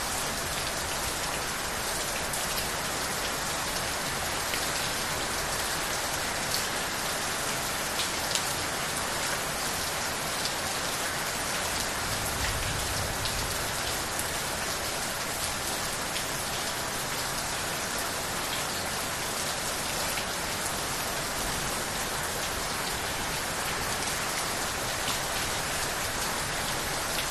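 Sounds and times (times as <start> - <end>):
heavy rain outside a house: 0.0 - 27.2.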